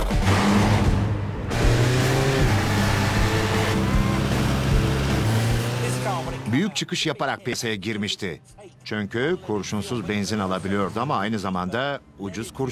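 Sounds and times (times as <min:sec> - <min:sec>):
car engine running during test drive: 0:00.0 - 0:06.7
speech: 0:06.7 - 0:12.7.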